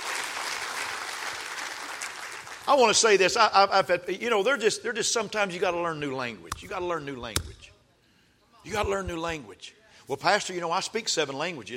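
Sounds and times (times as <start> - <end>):
audience clapping hands: 0.0 - 3.0
speech: 2.7 - 7.7, 8.6 - 11.7.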